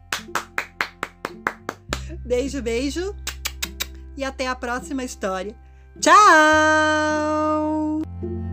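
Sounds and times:
hands clapping: 0:00.0 - 0:02.2, 0:03.2 - 0:04.0
speech: 0:02.1 - 0:03.2, 0:04.2 - 0:08.4.

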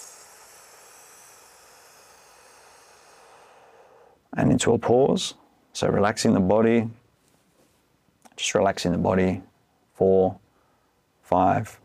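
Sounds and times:
slow inhale through pursed lips: 0:00.0 - 0:04.2
speech: 0:04.4 - 0:07.0, 0:08.4 - 0:10.4, 0:11.3 - 0:11.8.

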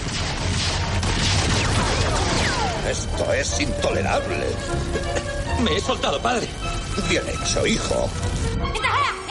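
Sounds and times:
soldiers firing guns in an adventure film: 0:00.0 - 0:03.1
speech: 0:03.3 - 0:09.2.

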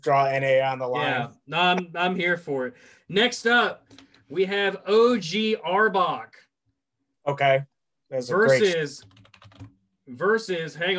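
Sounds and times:
speech: 0:00.0 - 0:06.4, 0:07.2 - 0:09.2, 0:10.1 - 0:10.9
keyboard typing a Pokémon name into a search: 0:09.0 - 0:09.8.

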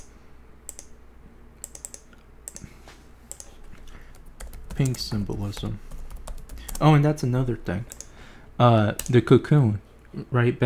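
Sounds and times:
faint typing on a computer keyboard: 0:01.6 - 0:02.7, 0:03.3 - 0:08.2, 0:09.0 - 0:09.2
speech: 0:04.8 - 0:05.9, 0:06.8 - 0:08.0, 0:08.6 - 0:10.6.

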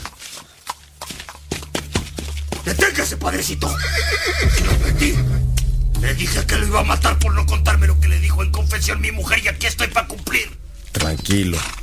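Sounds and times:
horse hooves clip-clopping: 0:00.0 - 0:04.7
speech: 0:03.0 - 0:11.8.

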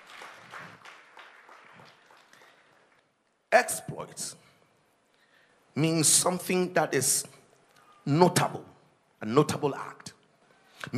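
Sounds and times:
audience applauding: 0:00.0 - 0:03.1
speech: 0:03.6 - 0:04.4, 0:05.8 - 0:07.4, 0:08.0 - 0:10.1.

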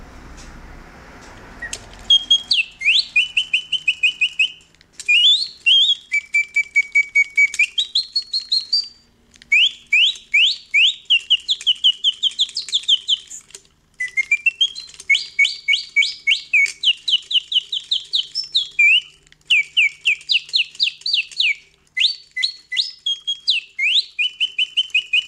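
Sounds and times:
mechanical singing-bird device imitating birdsong: 0:01.6 - 0:25.2.

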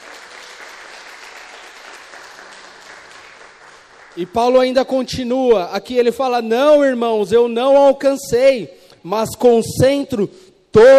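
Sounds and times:
audience applause: 0:00.0 - 0:04.3
speech: 0:04.2 - 0:10.9.

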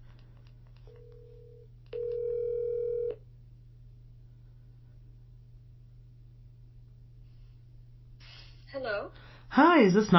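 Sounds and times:
telephone tone: 0:00.9 - 0:03.2
speech: 0:08.8 - 0:10.1.

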